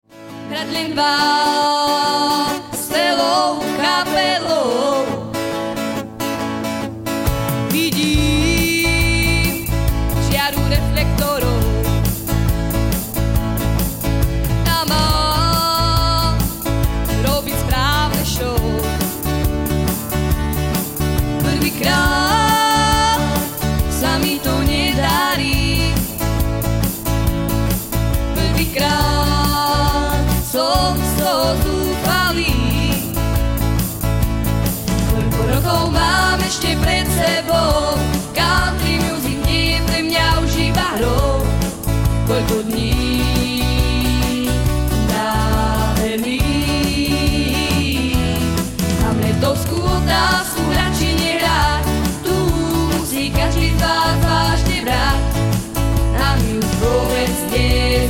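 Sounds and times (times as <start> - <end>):
country music: 0.0 - 58.0.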